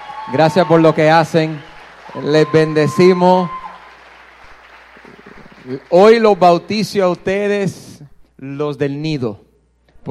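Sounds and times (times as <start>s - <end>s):
audience applause: 0.0s - 7.5s
speech: 0.3s - 3.6s, 5.6s - 7.8s, 8.4s - 9.4s.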